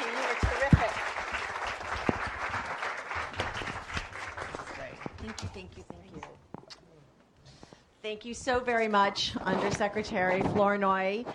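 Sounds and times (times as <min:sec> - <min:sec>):
audience applause: 0:00.0 - 0:05.5
speech: 0:08.0 - 0:11.3.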